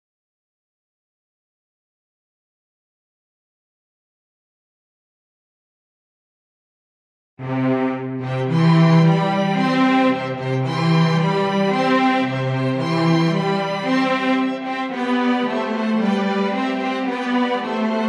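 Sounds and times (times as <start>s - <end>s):
instrumental music: 7.4s - 18.0s.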